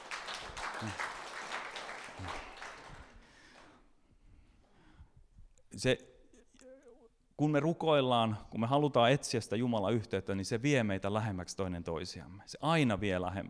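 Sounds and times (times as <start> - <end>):
applause: 0.0 - 3.8
speech: 0.8 - 1.1, 5.8 - 6.1, 7.4 - 13.4.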